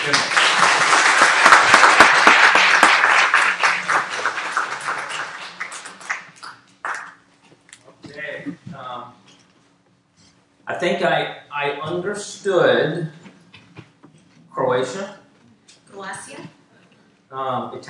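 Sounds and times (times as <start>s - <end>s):
audience applause: 0.0s - 7.2s
speech: 0.1s - 0.4s, 10.8s - 13.2s, 14.8s - 15.2s, 17.4s - 17.8s.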